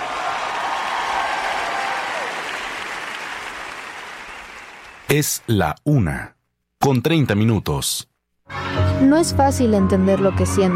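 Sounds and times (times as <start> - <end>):
loud applause: 0.0 - 5.5
speech: 5.1 - 10.7.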